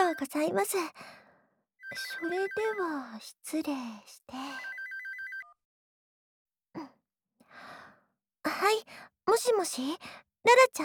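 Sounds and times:
telephone short electronic ringtone: 0.0s - 0.2s, 1.8s - 3.0s, 4.4s - 5.6s
speech: 0.2s - 1.2s, 1.9s - 4.7s, 6.8s - 7.0s, 8.5s - 10.8s.

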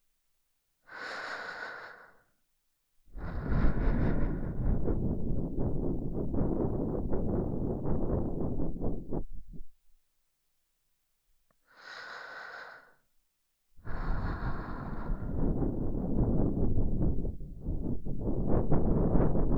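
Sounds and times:
person breathing in the left ear: 0.9s - 2.3s, 3.2s - 9.2s, 11.7s - 13.0s, 13.8s - 19.0s.

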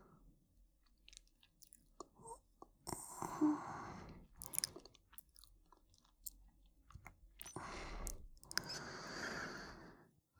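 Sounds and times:
sleeping breathing: 1.1s - 6.1s, 6.9s - 10.0s.

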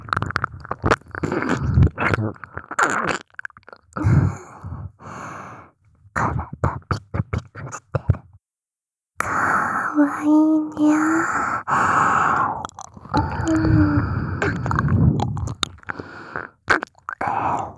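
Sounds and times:
ASMR ear licking: 0.0s - 4.0s, 11.8s - 17.7s
ASMR whispering: 6.2s - 8.2s, 9.2s - 11.7s, 12.4s - 15.8s, 17.2s - 17.7s.

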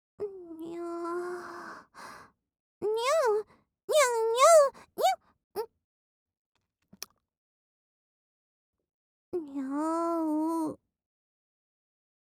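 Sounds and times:
person making cute voice sounds and kissing noises: 2.8s - 5.7s, 9.4s - 10.8s.

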